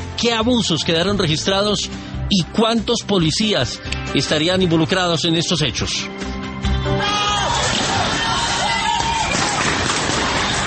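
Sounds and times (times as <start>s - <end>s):
speech: 0.2s - 6.3s
protest crowd shouting: 6.8s - 10.6s.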